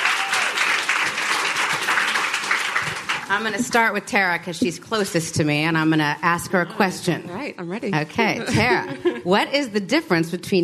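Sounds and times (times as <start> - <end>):
audience applause welcoming guests on stage: 0.0 - 3.6
speech: 3.3 - 10.6
laughter: 8.4 - 9.5.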